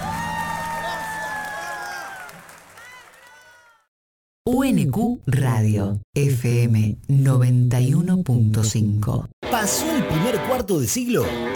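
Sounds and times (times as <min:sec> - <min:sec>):
audience applause and cheering: 0:00.0 - 0:03.9
speech: 0:04.5 - 0:11.5.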